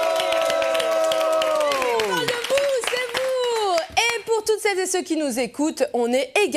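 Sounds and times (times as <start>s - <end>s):
audience clapping at a live recording: 0.0s - 4.4s
speech: 4.6s - 6.5s.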